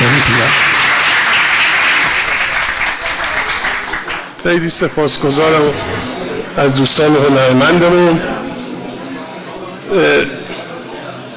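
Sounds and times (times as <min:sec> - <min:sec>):
audience applause at a festive Persian gathering: 0:00.0 - 0:04.4
speech: 0:04.4 - 0:08.4, 0:09.9 - 0:10.4.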